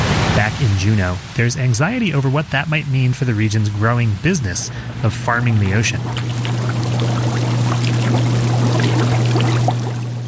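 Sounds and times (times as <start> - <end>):
bubbling seawater tanks of kelp, oysters and baby abalone in a lab: 0.0 - 10.2
speech: 0.4 - 6.8.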